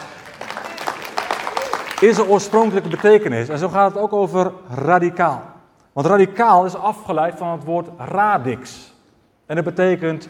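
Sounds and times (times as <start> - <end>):
scattered audience claps: 0.0 - 3.6
speech: 2.0 - 8.9, 9.5 - 10.2.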